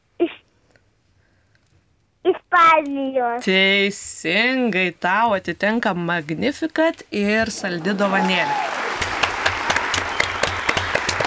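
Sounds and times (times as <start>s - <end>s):
speech: 2.6s - 8.7s
few people clapping in a radio studio: 7.6s - 11.2s.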